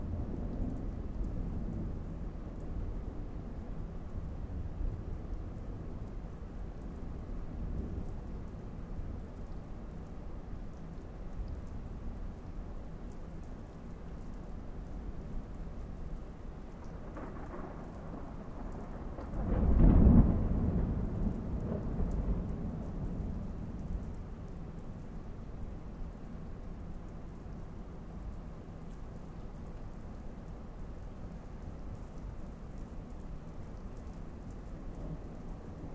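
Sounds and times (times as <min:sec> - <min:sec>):
thunderstorm rain: 0:00.0 - 0:35.9
big thunder in a thunderstorm: 0:16.8 - 0:23.6.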